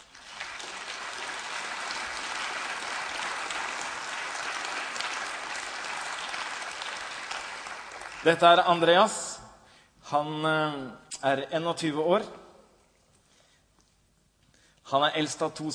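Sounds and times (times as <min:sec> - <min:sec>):
audience applause: 0:00.0 - 0:08.6
speech: 0:08.2 - 0:09.3, 0:10.1 - 0:12.4, 0:14.9 - 0:15.7.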